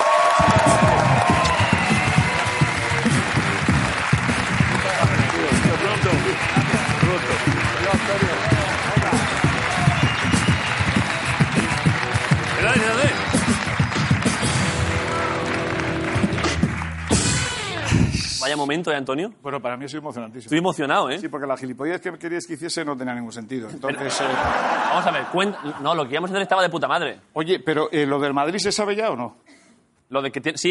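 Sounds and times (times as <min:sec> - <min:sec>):
audience applause: 0:00.0 - 0:18.1
speech: 0:18.6 - 0:30.6
laughter: 0:23.8 - 0:26.1.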